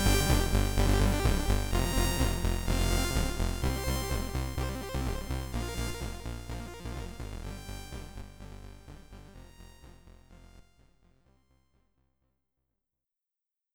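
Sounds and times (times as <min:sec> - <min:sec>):
SID stereo title screen chiptune music: 0:00.0 - 0:05.6.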